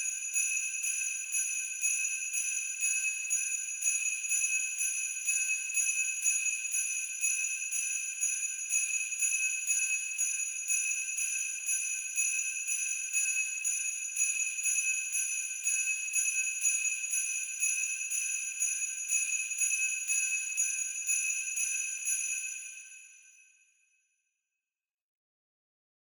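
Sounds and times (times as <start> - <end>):
sleigh bells with reverb, gentle knock: 0.0 - 23.4.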